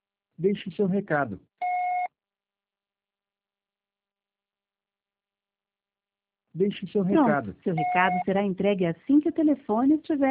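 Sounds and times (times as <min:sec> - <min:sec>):
speech: 0:00.4 - 0:01.5, 0:06.6 - 0:10.2
voicemail recording beep: 0:01.6 - 0:02.1, 0:07.2 - 0:08.3.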